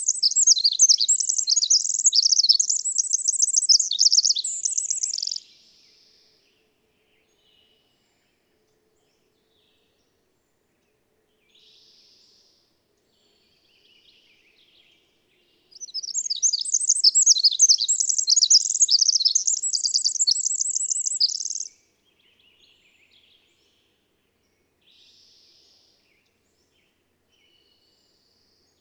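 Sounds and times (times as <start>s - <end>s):
twittering bird song with short trills: 0.0s - 5.5s, 15.7s - 21.8s.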